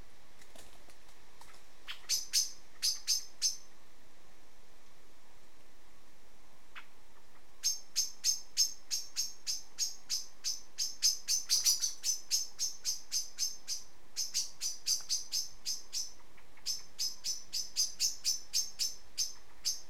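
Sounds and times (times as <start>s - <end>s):
faint background hiss: 0.0s - 19.8s
common blackbird chink calls: 1.8s - 3.7s, 6.7s - 19.8s.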